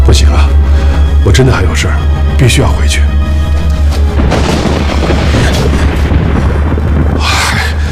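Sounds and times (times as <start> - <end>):
speech: 0.1 - 0.5, 1.3 - 3.1
heavy rain: 3.5 - 7.8
deep rumbling thunderclap: 3.9 - 7.8.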